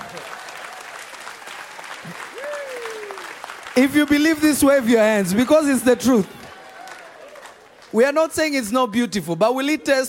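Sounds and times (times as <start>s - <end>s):
audience clapping: 0.0s - 8.3s
person whooping: 2.0s - 3.4s
speech: 3.8s - 6.4s, 7.9s - 10.0s.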